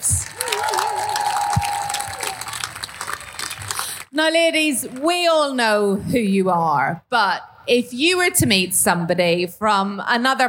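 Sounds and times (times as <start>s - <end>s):
audience applause: 0.0s - 4.1s
speech: 4.2s - 10.4s.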